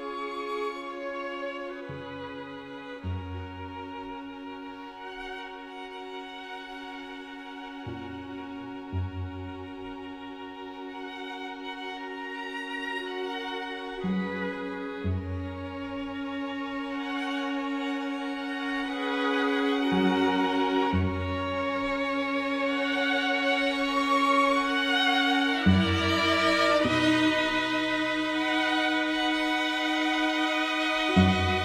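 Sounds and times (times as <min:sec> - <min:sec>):
string quartet playing: 0:00.0 - 0:31.6.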